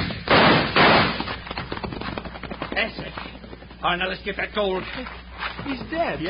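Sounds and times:
gunshot sound effects in a Western radio drama: 0:00.0 - 0:02.4
speech: 0:02.8 - 0:03.2, 0:03.8 - 0:06.2.

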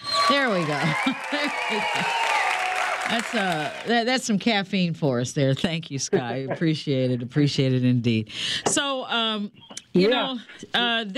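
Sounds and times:
applause sound effect: 0:00.0 - 0:04.0
speech: 0:00.3 - 0:02.3, 0:03.0 - 0:11.1.

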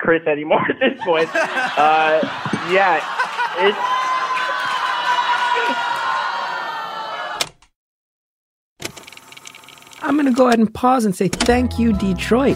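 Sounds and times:
speech: 0:00.1 - 0:04.0, 0:10.2 - 0:12.5
laughter: 0:00.7 - 0:06.6
live audience booing: 0:01.0 - 0:07.4.

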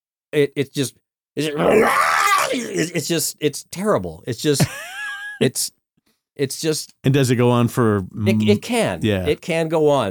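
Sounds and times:
speech: 0:00.3 - 0:05.8, 0:06.4 - 0:10.0
voice imitating screaming burning villagers: 0:01.4 - 0:03.0.

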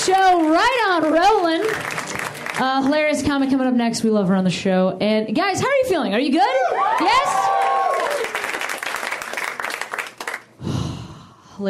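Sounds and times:
audience applause for comedian: 0:00.0 - 0:02.9, 0:06.8 - 0:10.5
speech: 0:00.1 - 0:02.0, 0:02.6 - 0:07.7.

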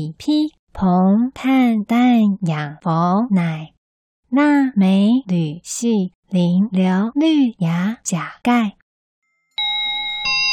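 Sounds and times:
speech: 0:00.0 - 0:08.8
school bell ringing: 0:09.5 - 0:10.5.

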